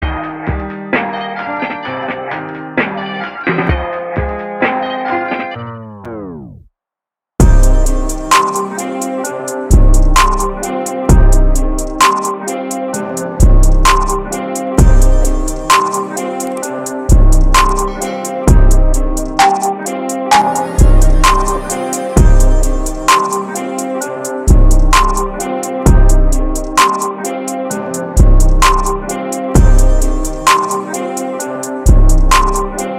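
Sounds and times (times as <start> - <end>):
instrumental music: 0.0 - 6.7, 7.4 - 32.9.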